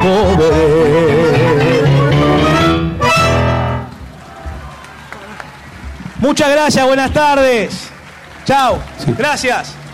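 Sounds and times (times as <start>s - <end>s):
sustained sung or musical phrase: 0.0s - 4.0s
audience applause: 3.9s - 9.9s
speech: 6.3s - 7.9s, 8.5s - 9.8s.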